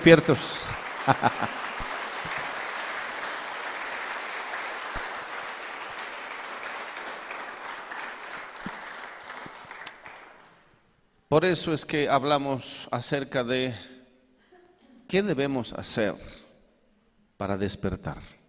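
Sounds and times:
speech: 0.0s - 1.6s, 11.3s - 13.9s, 15.1s - 16.4s, 17.4s - 18.4s
audience applause: 0.0s - 10.7s
laughter: 0.7s - 3.4s.

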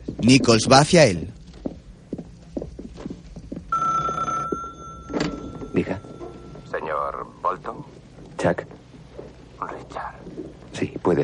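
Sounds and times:
speech: 0.2s - 1.4s, 5.8s - 6.0s, 8.4s - 8.7s, 11.1s - 11.2s
hotel telephone ringing: 3.7s - 7.4s.

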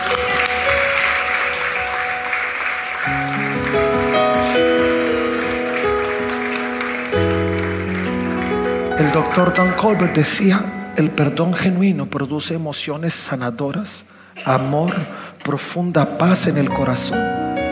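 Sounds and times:
audience applause: 0.0s - 10.0s
speech: 9.2s - 17.5s.

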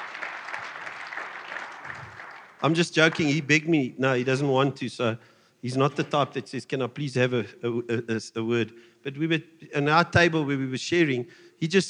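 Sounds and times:
audience applause: 0.0s - 3.5s
speech: 2.6s - 11.8s.

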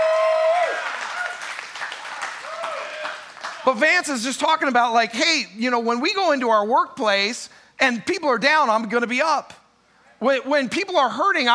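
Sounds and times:
audience applause: 0.0s - 3.7s
speech: 3.6s - 9.6s, 10.2s - 11.5s.

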